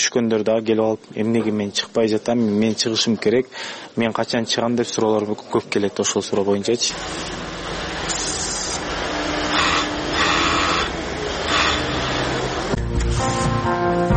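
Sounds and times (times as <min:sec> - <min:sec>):
speech: 0:00.0 - 0:07.5
sewing machines whirring in a busy Bishkek sewing workshop: 0:06.9 - 0:12.8
steady tonal hum: 0:06.9 - 0:13.5.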